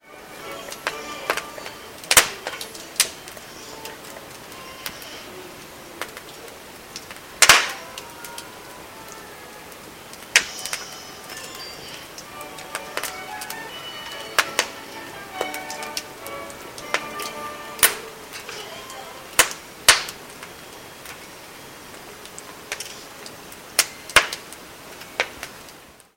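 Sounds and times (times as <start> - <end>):
fireside crackling: 0.0 - 26.1.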